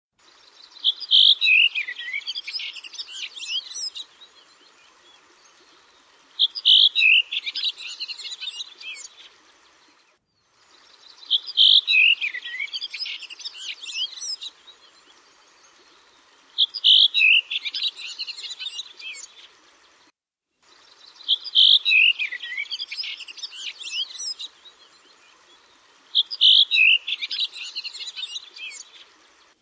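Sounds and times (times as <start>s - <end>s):
bird singing: 0.2s - 20.1s, 20.7s - 29.6s.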